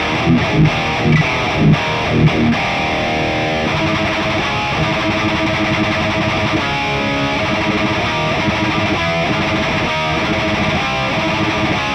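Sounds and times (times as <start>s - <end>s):
electric guitar effect through a profiling amplifier: 0.0s - 11.9s.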